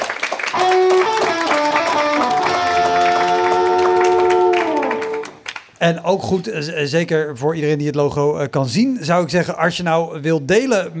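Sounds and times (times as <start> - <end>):
audience applause: 0.0 - 5.7
speech: 5.8 - 10.9.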